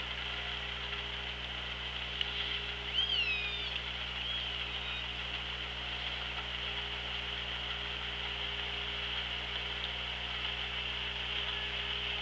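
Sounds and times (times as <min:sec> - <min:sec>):
low hum: 0:00.0 - 0:12.2
orca call: 0:02.9 - 0:05.1.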